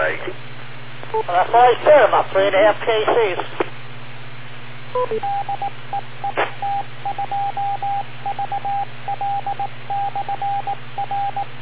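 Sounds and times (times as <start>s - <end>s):
speech: 1.1s - 3.6s, 4.9s - 11.6s
touch tones: 5.0s - 11.5s.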